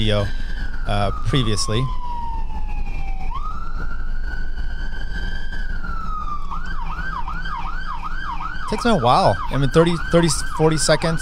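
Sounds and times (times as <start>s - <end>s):
speech: 0.0s - 2.0s, 8.7s - 11.2s
police car siren: 0.0s - 11.2s.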